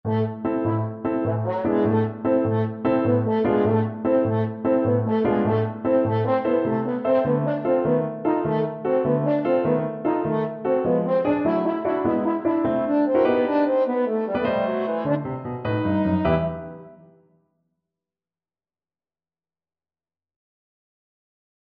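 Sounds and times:
French horn: 0:00.1 - 0:17.0.

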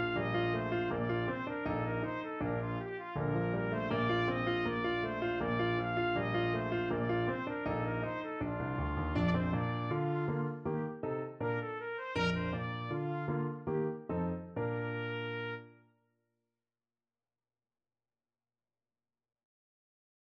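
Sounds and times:
trumpet playing a gavotte: 0:00.0 - 0:10.6, 0:11.4 - 0:13.8, 0:14.6 - 0:15.8.

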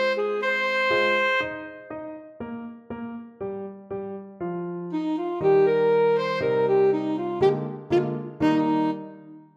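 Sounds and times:
alto saxophone: 0:00.0 - 0:01.9, 0:04.9 - 0:09.5.

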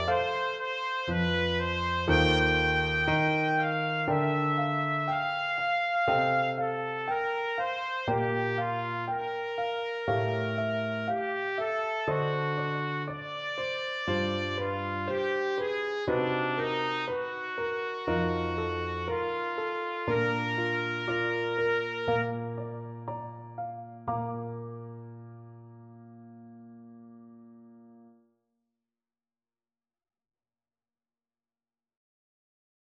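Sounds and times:
trumpet: 0:00.0 - 0:24.8.

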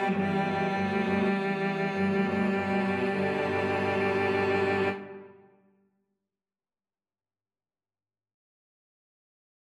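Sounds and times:
cello quartet: 0:00.0 - 0:05.5.

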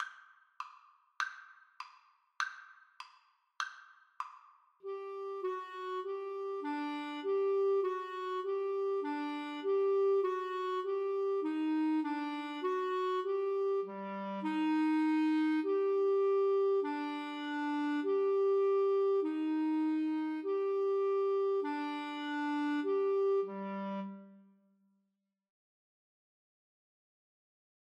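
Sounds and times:
clarinet duet: 0:04.9 - 0:24.6.

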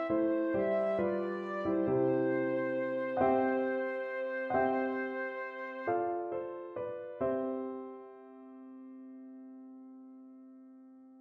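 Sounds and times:
flute: 0:00.0 - 0:07.6.

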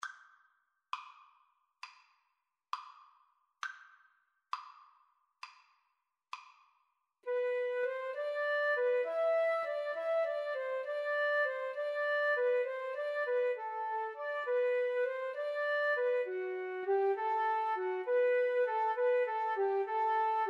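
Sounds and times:
flute in pastorale duet: 0:07.3 - 0:20.4.

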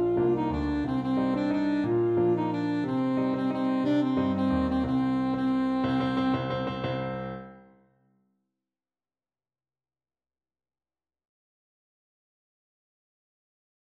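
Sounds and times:
alto saxophone: 0:00.0 - 0:07.6.

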